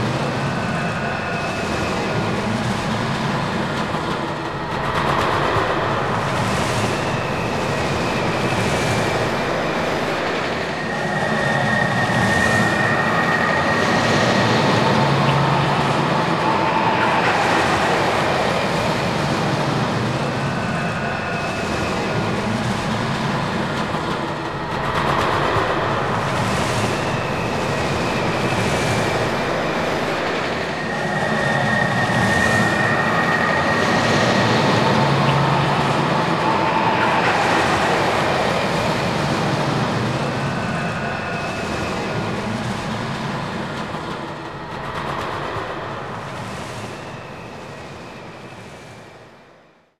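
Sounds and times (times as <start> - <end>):
mole train ambience: 0.0 - 49.8.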